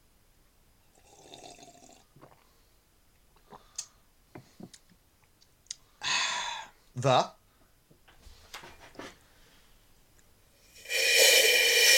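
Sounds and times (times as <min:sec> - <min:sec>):
speech: 0:07.0 - 0:07.4
slurping the last sip of tea from a cup: 0:10.7 - 0:11.9.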